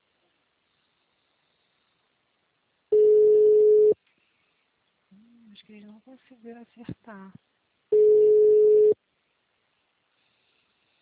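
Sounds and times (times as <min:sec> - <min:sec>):
telephone ringback tone on an unanswered call: 0:02.9 - 0:04.0, 0:07.9 - 0:09.0
speech: 0:05.8 - 0:07.5.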